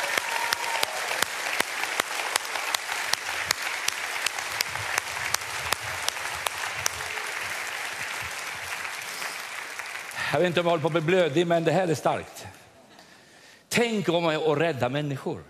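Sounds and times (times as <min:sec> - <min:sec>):
audience applause: 0:00.0 - 0:11.4
speech: 0:10.3 - 0:12.6, 0:13.8 - 0:15.4.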